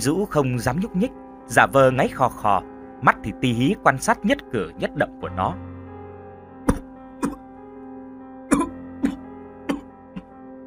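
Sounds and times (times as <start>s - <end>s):
speech: 0.0s - 5.7s, 7.2s - 7.4s
violent coughing fit: 6.7s - 7.4s, 8.5s - 9.9s.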